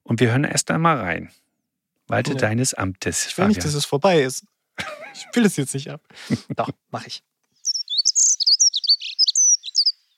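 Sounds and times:
speech: 0.1s - 1.4s, 2.1s - 7.3s
bird song: 7.5s - 10.1s.

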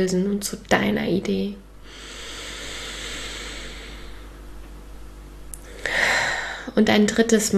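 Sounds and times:
speech: 0.0s - 2.1s, 6.8s - 7.5s
deep inhalation during a guided breathing exercise: 1.8s - 4.4s, 5.6s - 6.7s.

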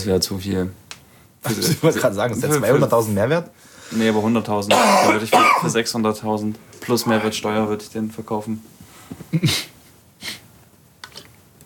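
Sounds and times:
speech: 0.0s - 0.8s, 1.4s - 9.7s
dry coughing: 1.4s - 2.6s, 4.7s - 5.8s, 9.3s - 10.4s.

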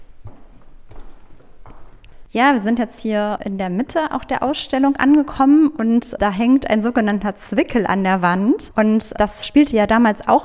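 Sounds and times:
footsteps of people walking through a museum exhibition: 0.0s - 2.3s
speech: 2.3s - 10.4s.

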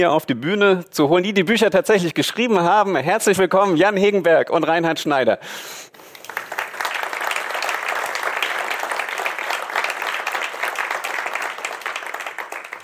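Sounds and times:
speech: 0.0s - 6.1s
audience applause: 6.1s - 12.8s.

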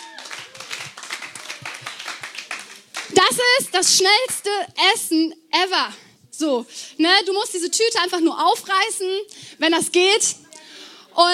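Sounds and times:
audience applause: 0.0s - 3.2s
speech: 3.1s - 10.4s.

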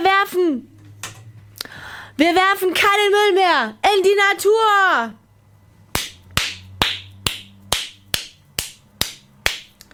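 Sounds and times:
speech: 2.2s - 5.2s
hand clapping: 6.0s - 9.8s.

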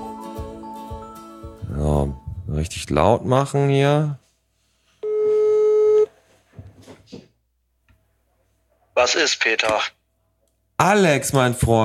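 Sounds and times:
speech: 1.7s - 4.2s, 9.0s - 10.0s, 10.8s - 11.8s
telephone ringback tone while calling a friend: 5.0s - 6.1s.

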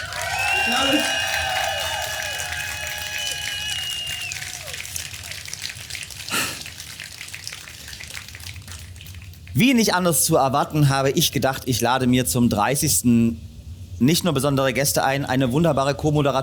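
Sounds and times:
whistles and cheering: 0.0s - 8.3s
live audience applause outdoors: 0.0s - 9.3s
speech: 0.7s - 1.2s, 9.6s - 16.4s.

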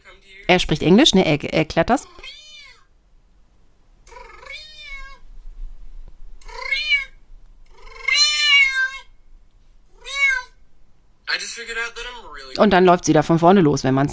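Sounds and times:
speech: 0.5s - 2.4s, 12.6s - 14.1s
cat meowing in a played video: 2.0s - 2.9s, 4.1s - 5.3s, 6.4s - 9.1s, 9.9s - 10.6s.

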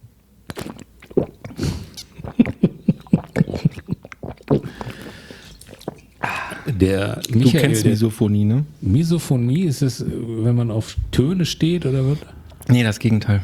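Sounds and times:
wet chewing and smacking mouth noises: 0.4s - 7.8s
swallowing: 0.4s - 7.9s
speech: 6.8s - 13.4s.

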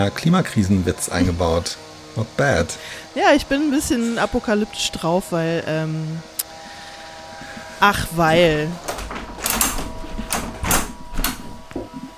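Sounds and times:
speech: 0.0s - 6.3s, 7.8s - 8.9s
faint hum: 0.0s - 12.1s
window being shut in a building under scaffolding and renovation: 8.3s - 12.1s.

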